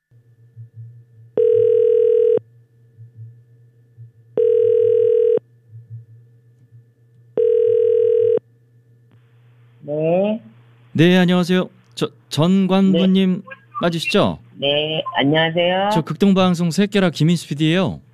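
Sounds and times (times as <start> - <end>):
faint low hum: 0.0 - 18.1
telephone ringback tone of outgoing call: 1.4 - 2.4, 4.4 - 5.4, 7.4 - 8.4
speech: 11.0 - 18.1.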